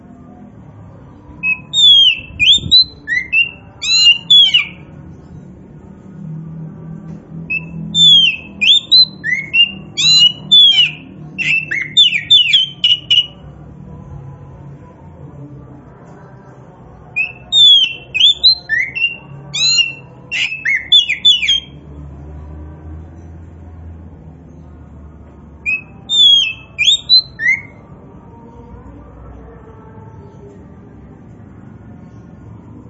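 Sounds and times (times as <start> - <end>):
Oriental magpie-robin song: 1.4 - 4.8, 7.5 - 13.4, 17.2 - 21.8, 25.6 - 27.8.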